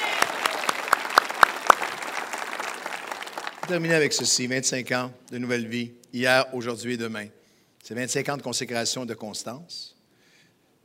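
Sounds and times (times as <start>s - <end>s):
applause claps: 0.0s - 3.8s
speech: 3.7s - 10.0s.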